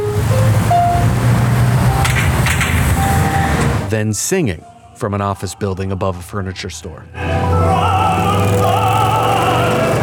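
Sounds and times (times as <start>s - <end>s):
traffic din: 0.0s - 3.9s, 7.2s - 10.0s
speech: 3.9s - 8.6s.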